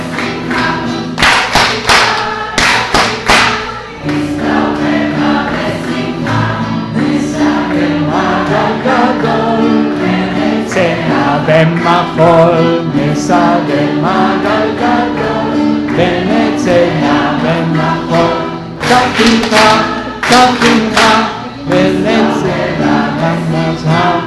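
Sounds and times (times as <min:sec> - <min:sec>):
audience clapping along to a song: 0:00.0 - 0:04.6, 0:05.2 - 0:23.0
lively song: 0:00.0 - 0:24.2
speech: 0:11.5 - 0:15.3, 0:19.2 - 0:21.3.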